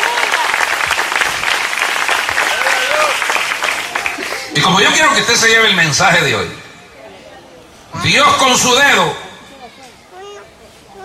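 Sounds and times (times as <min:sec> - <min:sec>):
audience applause: 0:00.0 - 0:05.3
voices calling out: 0:02.3 - 0:11.0
speech: 0:04.7 - 0:06.6, 0:08.0 - 0:09.2.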